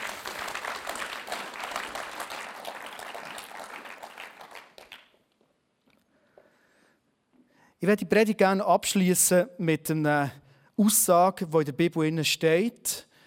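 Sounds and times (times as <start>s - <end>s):
audience applauding: 0.0s - 5.4s
speech: 7.8s - 13.1s.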